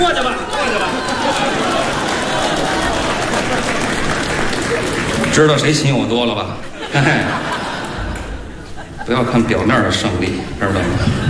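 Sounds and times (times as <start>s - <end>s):
laughter: 0.0s - 5.4s, 6.2s - 11.2s
crowd audience applause: 0.0s - 8.7s
speech: 5.4s - 7.6s, 9.1s - 11.2s.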